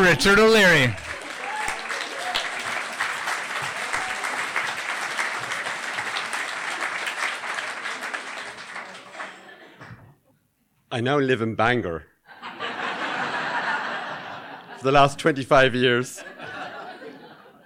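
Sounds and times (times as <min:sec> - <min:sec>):
audience applause greeting a comedian at an evening show: 0:00.0 - 0:09.6
speech: 0:00.1 - 0:01.1, 0:10.9 - 0:12.1, 0:14.8 - 0:16.5
laughter: 0:07.9 - 0:09.9, 0:12.3 - 0:15.0, 0:16.2 - 0:17.6.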